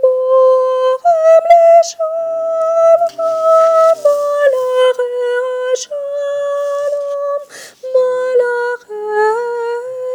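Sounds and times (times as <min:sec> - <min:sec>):
sopranos singing: 0:00.0 - 0:09.8.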